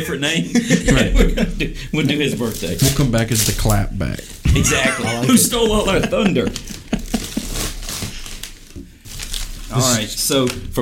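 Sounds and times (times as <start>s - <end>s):
speech: 0.0s - 6.8s, 9.7s - 10.8s
laughter: 0.3s - 2.3s, 4.5s - 7.9s
cardboard crinkling and tearing: 2.4s - 4.5s, 5.1s - 10.7s.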